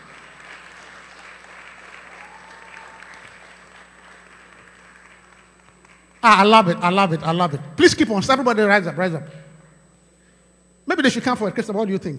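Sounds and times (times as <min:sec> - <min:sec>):
audience clapping: 0:00.0 - 0:06.4
speech: 0:06.2 - 0:09.4, 0:11.0 - 0:12.1.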